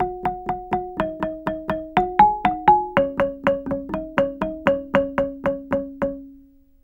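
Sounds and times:
gambang xylophone: 0.0s - 6.5s.

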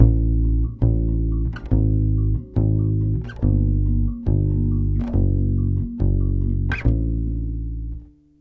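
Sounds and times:
Brazilian bossa bass groove: 0.0s - 8.2s.

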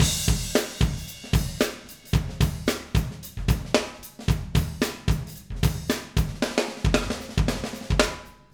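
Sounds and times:
live acoustic drums playing: 0.0s - 8.5s.

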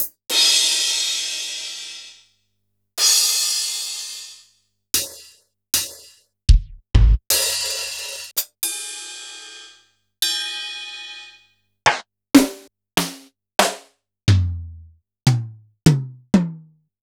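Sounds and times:
Kurzweil drum kit: 0.0s - 2.2s, 3.0s - 4.4s, 5.0s - 8.8s, 11.9s - 16.7s.

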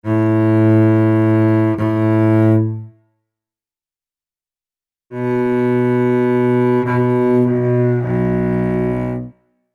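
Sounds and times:
Celtic cello music: 0.0s - 2.9s, 5.1s - 9.4s.

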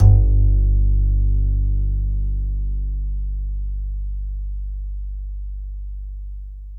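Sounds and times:
soft acoustic bass note G1: 0.0s - 6.7s.

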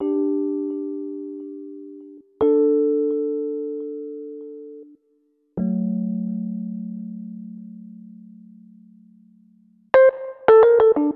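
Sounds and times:
Rhodes cinematic funk music: 0.0s - 4.8s, 5.6s - 8.4s, 9.9s - 11.1s.

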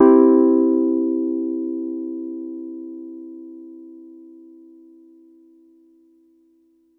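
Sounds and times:
Wurlitzer electric piano in a major key: 0.0s - 4.4s.

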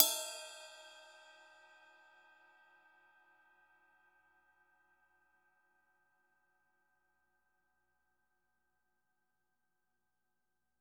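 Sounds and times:
cymbal: 0.0s - 4.8s.

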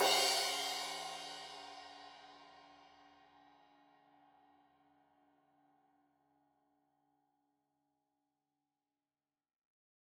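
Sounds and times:
15 inch crash cymbal edge hit: 0.0s - 2.0s.

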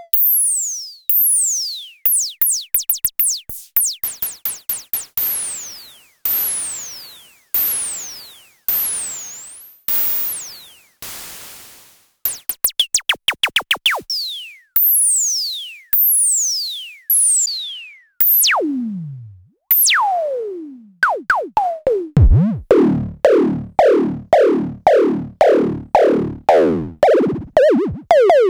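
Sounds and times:
Klone Dual Percussion Synthesiser pitch: 2.1s - 7.0s, 12.3s - 15.1s, 19.7s - 20.1s, 21.1s - 28.4s.

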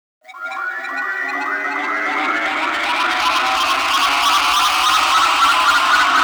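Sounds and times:
energetic trance sound effect: 0.3s - 6.1s.

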